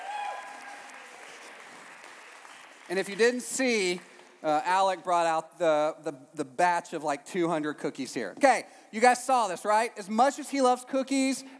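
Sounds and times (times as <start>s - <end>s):
audience applause: 0.0s - 4.3s
speech: 2.9s - 11.5s.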